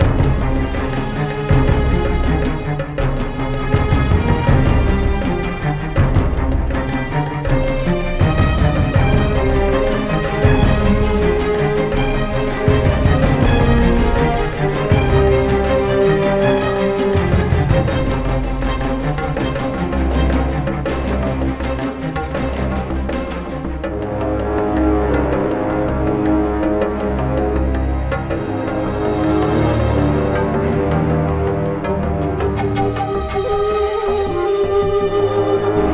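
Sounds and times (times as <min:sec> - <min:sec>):
low combat music: 0:00.0 - 0:35.9.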